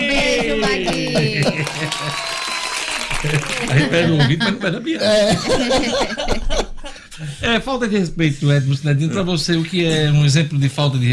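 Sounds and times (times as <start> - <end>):
laughter: 0.0 - 7.3
speech: 0.6 - 2.6, 3.2 - 11.1
applause: 0.8 - 4.0.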